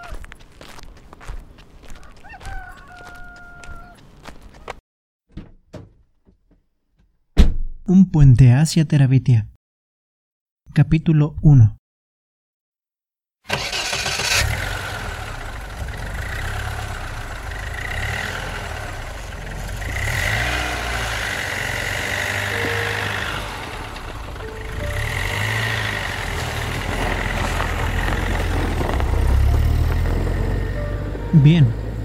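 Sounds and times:
speech: 0:07.9 - 0:09.5, 0:10.8 - 0:11.8, 0:31.4 - 0:31.8
pickup truck engine starting and idling: 0:13.5 - 0:32.0.

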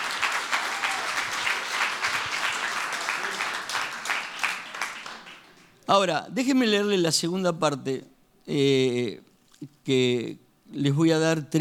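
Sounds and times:
audience applause: 0:00.0 - 0:05.7
speech: 0:05.9 - 0:11.5.

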